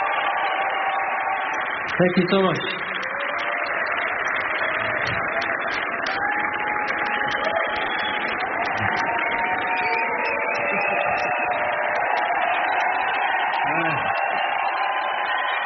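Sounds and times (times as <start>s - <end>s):
concert audience applauding: 0.0s - 15.6s
speech: 2.0s - 3.0s.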